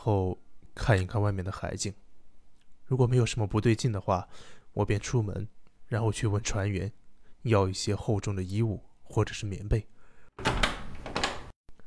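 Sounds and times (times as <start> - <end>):
speech: 0.0 - 2.1, 2.9 - 10.6
door opening: 10.4 - 11.6.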